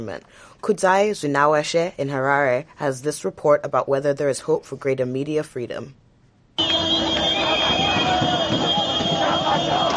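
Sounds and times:
speech: 0:00.0 - 0:06.0
car horns: 0:06.6 - 0:09.9
crowd cheering celebrating: 0:06.6 - 0:09.9.

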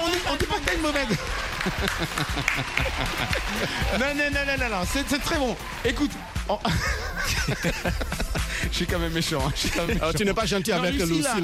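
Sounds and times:
audience applauding: 0:00.0 - 0:08.6
laughter: 0:00.1 - 0:05.8, 0:06.5 - 0:11.4
speech: 0:00.6 - 0:11.4.

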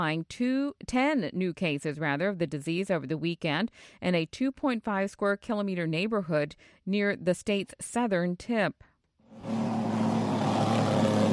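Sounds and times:
speech: 0:00.0 - 0:09.7
mosquito spraying equipment motor drone: 0:09.4 - 0:11.3.

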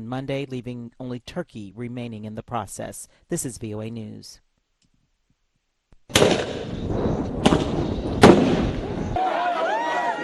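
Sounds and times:
speech: 0:00.0 - 0:04.4
crackling rumble: 0:06.0 - 0:09.2
police firing tear gas at anti-government protesters in Nairobi, Kenya: 0:06.1 - 0:09.2.

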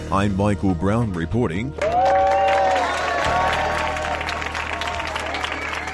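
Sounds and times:
speech: 0:00.1 - 0:01.9
crowd applauding outside a polling station: 0:01.8 - 0:05.9.

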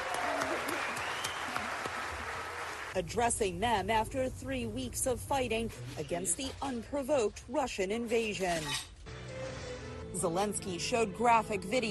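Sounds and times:
U.S. lawmakers clapping for the leader of Ukraine: 0:00.0 - 0:03.0
speech: 0:02.9 - 0:08.9, 0:10.2 - 0:11.8.

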